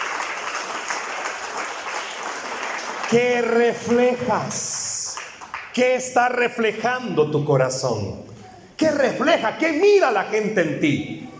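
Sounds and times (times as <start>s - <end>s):
church congregation clapping during a service: 0.0s - 6.6s
speech: 3.1s - 4.8s, 5.8s - 11.2s.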